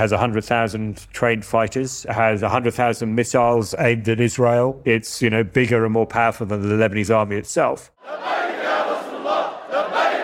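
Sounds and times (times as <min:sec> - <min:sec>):
speech: 0:00.0 - 0:08.3
Hezbollah supporters cheering and chanting: 0:08.0 - 0:10.2.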